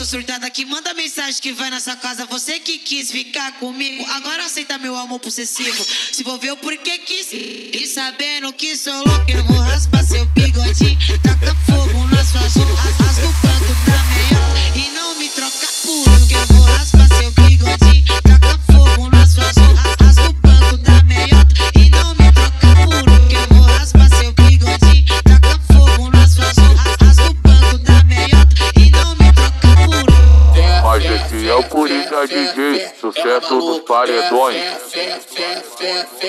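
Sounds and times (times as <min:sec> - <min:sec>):
funk music: 0:09.1 - 0:14.8, 0:16.1 - 0:32.6.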